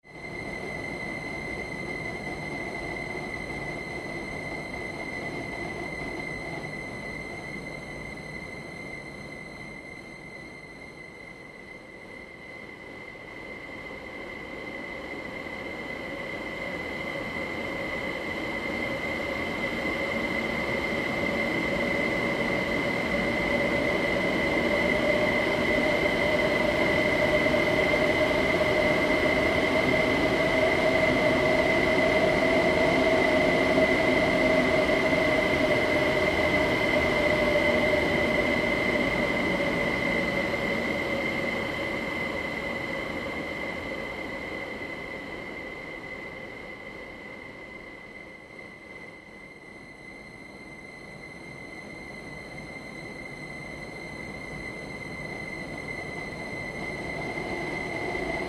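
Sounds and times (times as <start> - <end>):
frozen grain train howl: 0.1 - 58.4.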